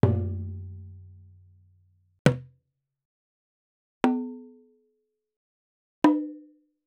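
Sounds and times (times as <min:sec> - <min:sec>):
nagado and okedo taiko drums: 0:00.0 - 0:01.1.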